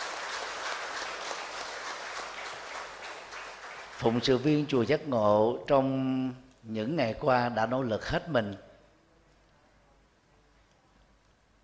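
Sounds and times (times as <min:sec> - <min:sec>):
crowd applauding: 0:00.0 - 0:04.8
speech: 0:04.0 - 0:08.7.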